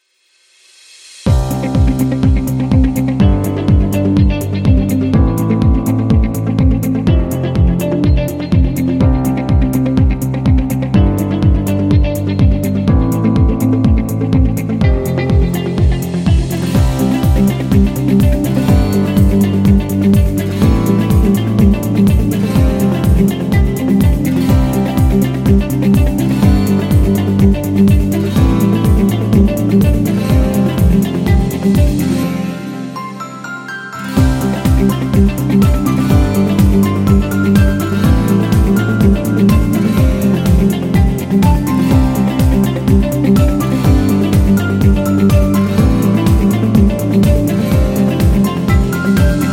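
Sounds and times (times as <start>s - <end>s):
corporate on-hold music: 0.2s - 49.5s.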